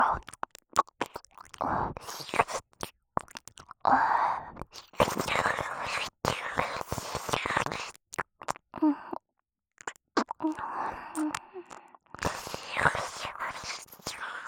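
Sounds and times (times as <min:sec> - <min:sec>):
woman licking the left ear in ASMR recording: 0:00.2 - 0:03.8, 0:04.6 - 0:08.6, 0:09.8 - 0:14.1.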